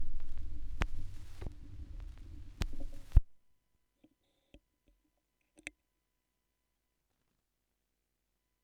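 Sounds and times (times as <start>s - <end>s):
vinyl record noise: 0.0s - 3.3s.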